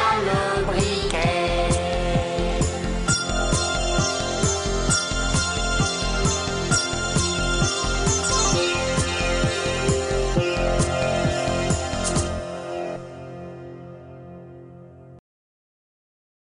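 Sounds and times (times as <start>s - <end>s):
French nursery song karaoke: 0.0s - 13.1s.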